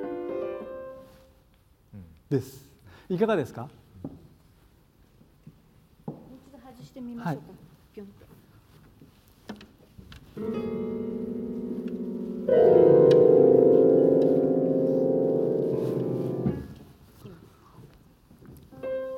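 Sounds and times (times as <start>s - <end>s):
three-string instrument: 10.4s - 16.6s.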